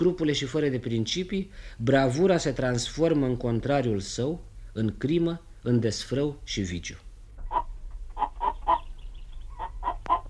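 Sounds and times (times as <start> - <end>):
speech: 0.0 - 7.0
low steady hum: 0.0 - 10.2
chicken clucking: 7.4 - 10.2.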